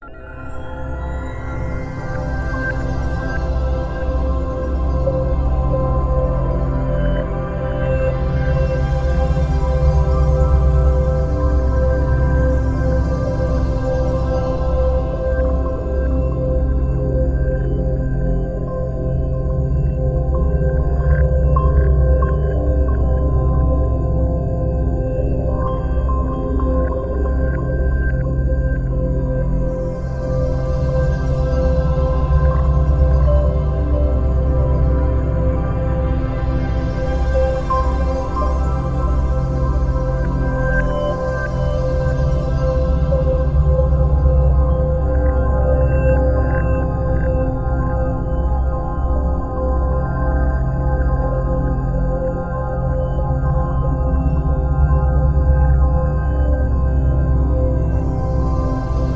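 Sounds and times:
calming drones: 0.9s - 59.1s.

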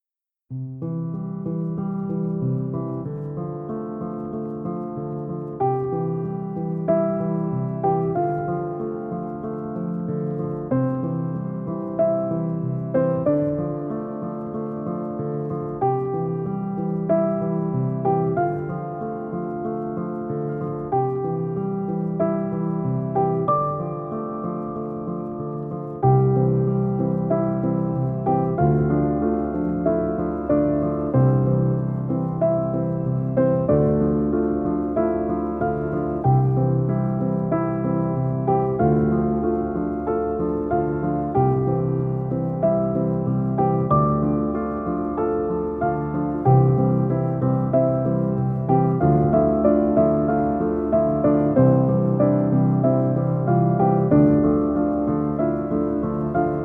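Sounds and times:
easy listening piano: 0.0s - 56.6s.

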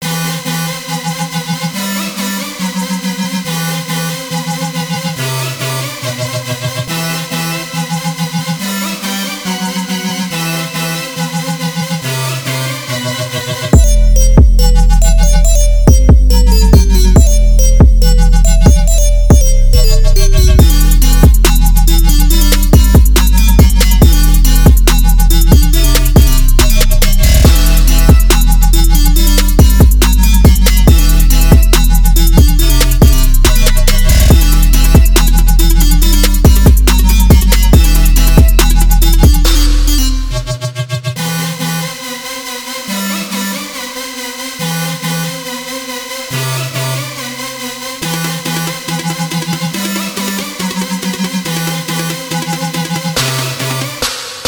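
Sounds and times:
dubtrap music at 140 BPM: 0.0s - 54.4s.

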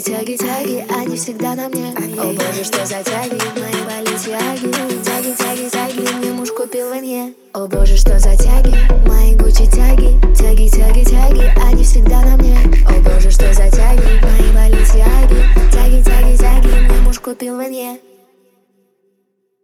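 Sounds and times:
low bass tone: 7.8s - 17.2s.

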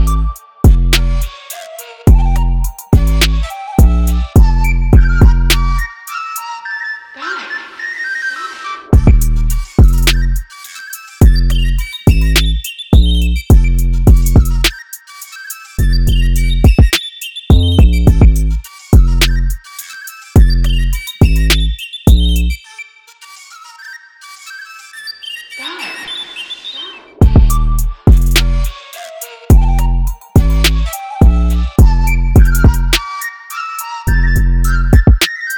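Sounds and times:
minimal trap beat: 0.0s - 6.2s, 9.0s - 22.6s, 27.2s - 35.5s
flute melody: 0.0s - 21.5s, 22.6s - 35.5s.

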